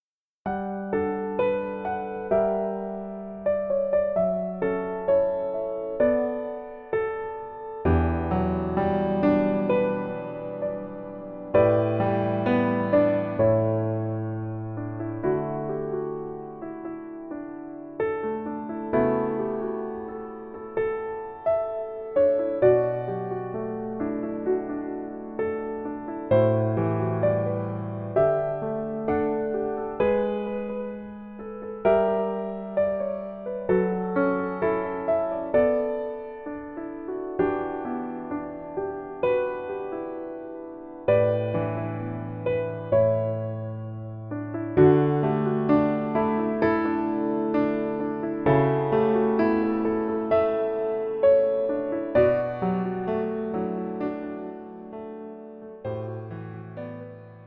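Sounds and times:
piano melody instrumental: 0.0s - 57.4s.

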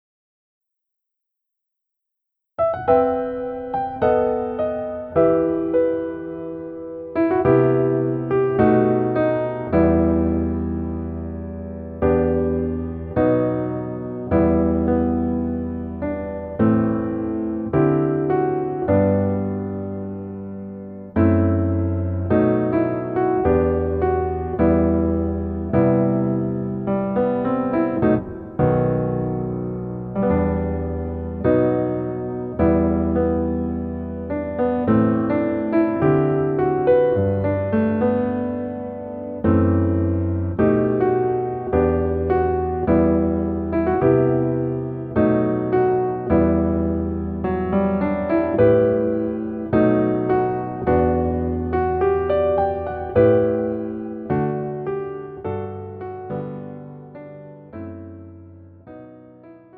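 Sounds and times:
piano version: 0.9s - 59.7s.

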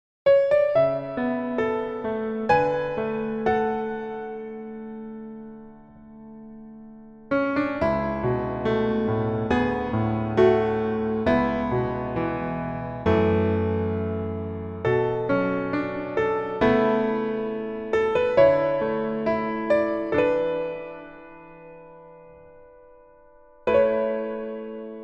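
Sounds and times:
piano version in male key: 0.3s - 25.0s.

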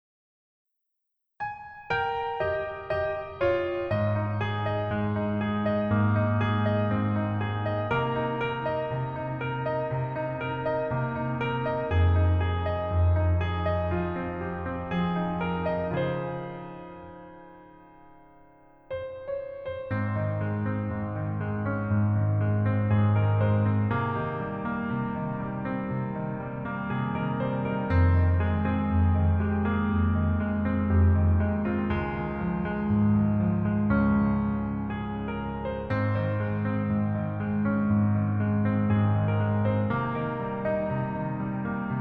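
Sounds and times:
piano melody backing track: 1.4s - 41.9s.

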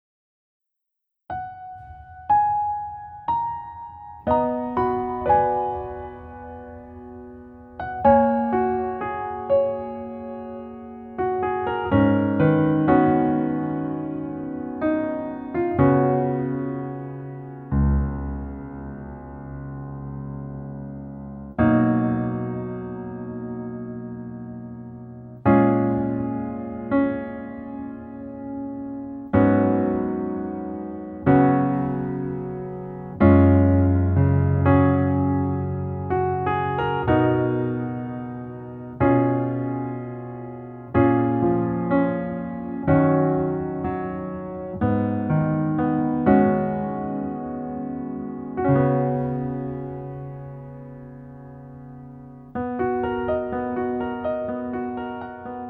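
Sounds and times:
piano version lowered by one key: 1.3s - 55.6s.

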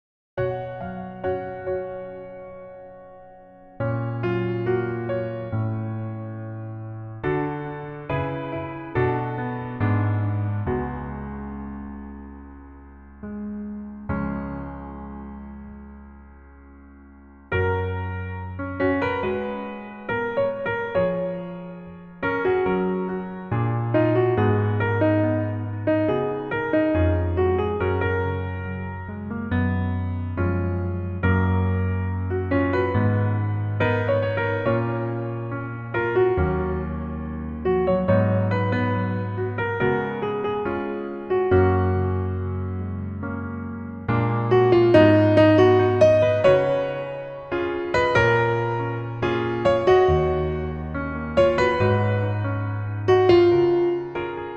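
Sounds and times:
piano melody backing track: 0.4s - 54.5s.

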